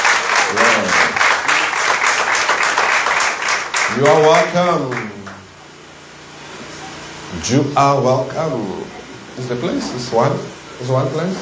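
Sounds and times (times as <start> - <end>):
crowd clapping hands: 0.0 - 5.6
speech: 4.0 - 5.2, 7.4 - 11.4.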